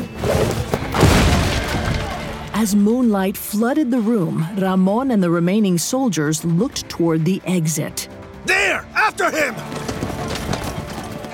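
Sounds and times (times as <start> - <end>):
splintering timber: 0.6 - 2.4
heavy wooden front door bursting open with a booming crash: 0.7 - 2.4
rumbling crackling breaking debris: 0.7 - 2.7
speech: 2.6 - 9.9.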